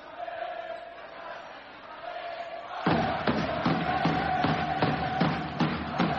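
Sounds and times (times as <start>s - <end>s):
basketball arena crowd cheering and applauding: 2.8s - 6.1s.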